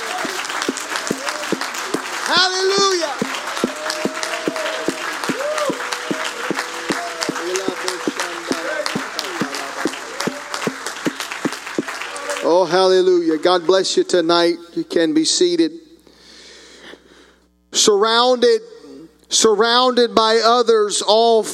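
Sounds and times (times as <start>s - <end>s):
audience clapping hands: 0.0s - 13.8s
speech: 2.3s - 3.2s, 12.7s - 15.8s, 17.8s - 18.7s, 19.3s - 21.5s.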